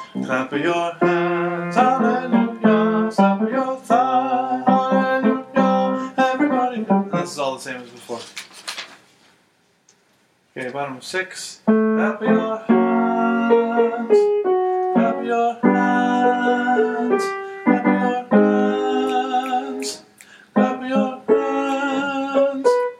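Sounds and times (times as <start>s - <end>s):
tenor voice singing: 0.2s - 7.6s, 11.8s - 14.3s, 14.9s - 22.9s.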